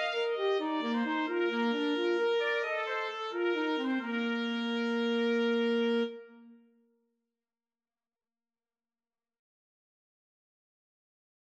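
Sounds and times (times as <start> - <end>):
trumpet and alto saxophone duet of a Christmas carol: 0.0 - 6.5.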